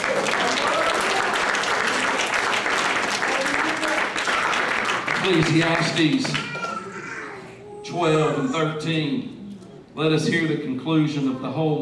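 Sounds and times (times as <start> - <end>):
audience applauding: 0.0 - 6.8
speech: 5.2 - 6.5, 7.9 - 9.4, 10.0 - 11.8.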